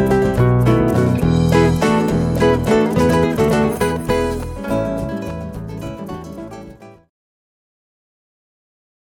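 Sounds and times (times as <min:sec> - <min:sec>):
guitars: 0:00.0 - 0:07.1.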